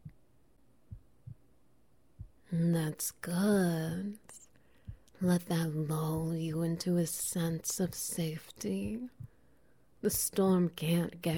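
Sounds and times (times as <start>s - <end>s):
heartbeat heard through chest: 0.0s - 0.2s, 0.9s - 1.5s, 2.2s - 2.4s, 4.9s - 6.6s, 7.8s - 8.1s, 8.8s - 9.4s, 10.1s - 10.4s
speech: 2.5s - 4.4s, 5.2s - 9.2s, 10.0s - 11.3s.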